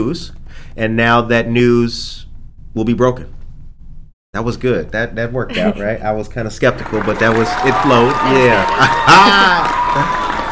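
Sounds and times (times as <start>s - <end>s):
speech: 0.0s - 2.2s, 2.8s - 3.4s, 4.4s - 10.2s
audience clapping: 6.5s - 10.5s
laughter: 6.8s - 10.5s.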